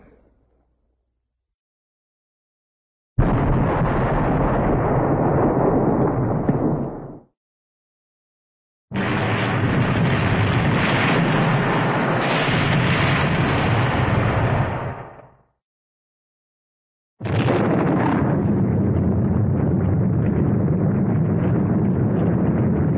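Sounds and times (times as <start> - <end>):
large cartoon explosion: 3.2 - 7.2, 9.0 - 15.2, 17.2 - 22.8.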